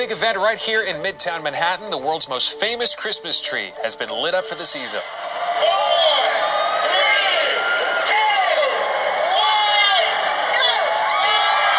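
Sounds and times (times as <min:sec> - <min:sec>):
speech: 0:00.0 - 0:08.2
crowd cheering at the Rockefeller Center Christmas tree lighting in Midtown Manhattan: 0:04.4 - 0:11.7
whoops and shouts: 0:05.0 - 0:11.7.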